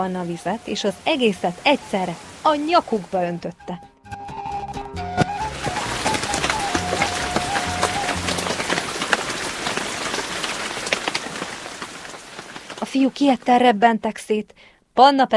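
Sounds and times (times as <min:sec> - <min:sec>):
heavy rain pouring: 0:00.0 - 0:03.4, 0:05.0 - 0:13.7
speech: 0:00.0 - 0:03.9, 0:12.9 - 0:15.3.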